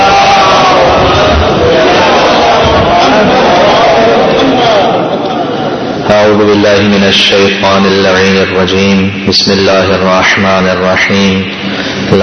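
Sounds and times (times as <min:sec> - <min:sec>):
large crowd chanting the salawat in unison: 0:00.0 - 0:05.5
speech: 0:06.4 - 0:12.2.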